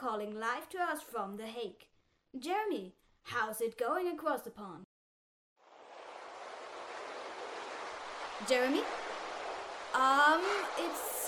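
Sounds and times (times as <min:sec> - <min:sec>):
speech: 0:00.0 - 0:04.9, 0:08.4 - 0:09.0, 0:09.9 - 0:11.2
rushing water through a phone line from flooded The Hague: 0:05.6 - 0:11.2.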